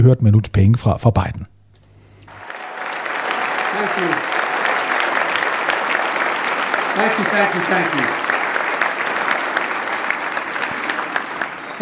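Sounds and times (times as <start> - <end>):
speech: 0.0 - 1.5, 7.0 - 8.2
audience applause: 2.3 - 11.7.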